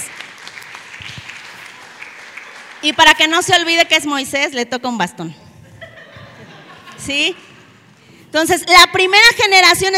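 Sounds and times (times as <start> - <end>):
audience applause: 0.0 - 3.0
speech: 2.8 - 5.4, 7.1 - 7.5, 8.3 - 9.9
laughter: 5.6 - 7.2.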